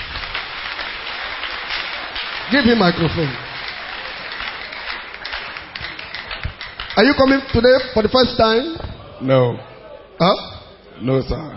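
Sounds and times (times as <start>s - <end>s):
audience clapping hands: 0.0s - 8.8s
speech: 2.5s - 3.4s, 7.0s - 11.5s.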